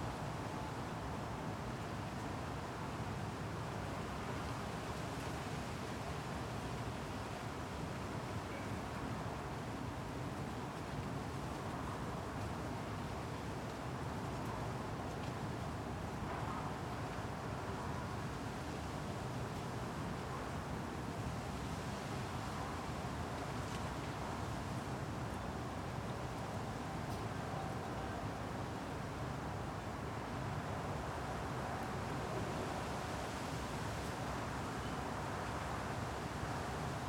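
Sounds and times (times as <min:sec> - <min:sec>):
wind at night in Arcueil France: 0:00.0 - 0:37.0.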